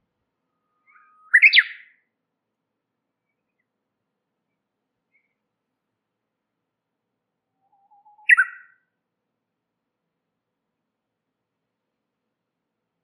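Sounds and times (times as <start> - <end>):
warbler chirping and twittering: 0.8 - 2.0, 7.8 - 8.8.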